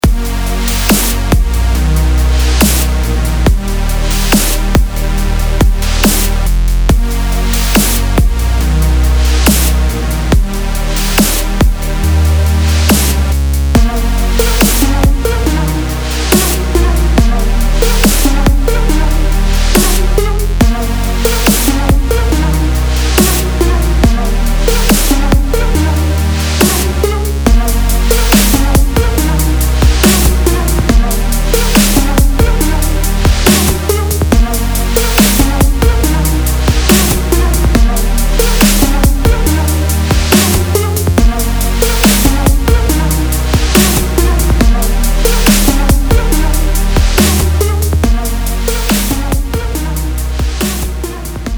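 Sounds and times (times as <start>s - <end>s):
electronic music: 0.0s - 51.5s.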